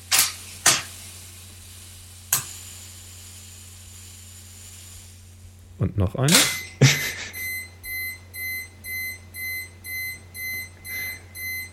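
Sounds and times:
speech: 0:05.8 - 0:07.0
truck reversing warning beeps: 0:06.5 - 0:11.7
laughter: 0:06.8 - 0:07.4.

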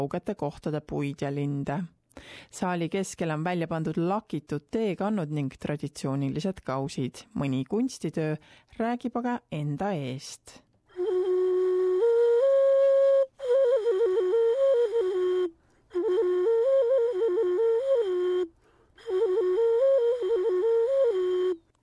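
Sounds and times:
speech: 0:00.0 - 0:10.7
ocarina melody: 0:10.9 - 0:21.8.

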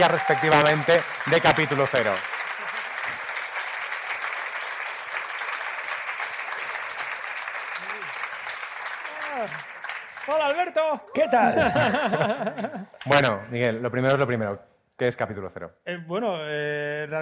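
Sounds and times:
speech: 0:00.0 - 0:02.3, 0:10.3 - 0:17.2
audience applause: 0:00.0 - 0:13.3
laughter: 0:11.2 - 0:13.2.

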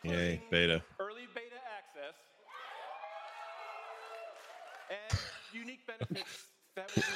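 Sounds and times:
speech: 0:00.0 - 0:01.3, 0:04.9 - 0:07.1
crowd cheering and roaring: 0:02.5 - 0:05.1.

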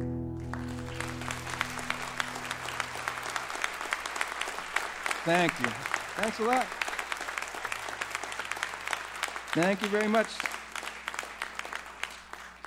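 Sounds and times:
audience clapping: 0:00.0 - 0:12.6
speech: 0:05.2 - 0:06.8, 0:09.6 - 0:10.5.

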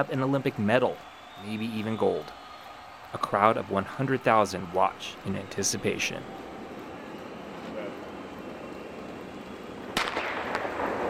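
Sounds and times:
speech: 0:00.0 - 0:02.4, 0:03.1 - 0:06.5
official's starting pistol shot: 0:10.0 - 0:11.0.

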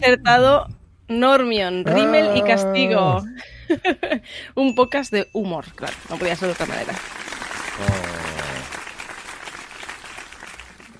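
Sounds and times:
speech: 0:00.0 - 0:07.2, 0:07.8 - 0:08.3
applause sound effect: 0:05.9 - 0:10.9
laughter: 0:07.8 - 0:08.7.

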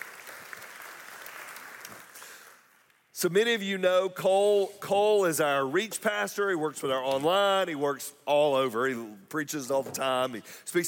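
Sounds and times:
audience applause: 0:00.0 - 0:02.8
speech: 0:03.2 - 0:10.8.

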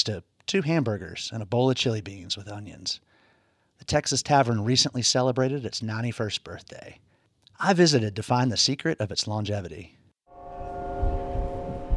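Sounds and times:
speech: 0:00.0 - 0:03.1, 0:03.8 - 0:10.0
church bells ringing in Roanoke: 0:10.3 - 0:11.9
low rumbling pulses: 0:10.4 - 0:11.9.

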